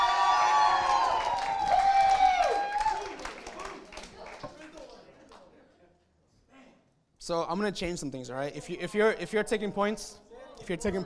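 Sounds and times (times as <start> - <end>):
crowd cheering with loud whoops and shouts: 0.0 - 4.0
crowd clapping: 0.0 - 5.6
speech: 7.2 - 11.0.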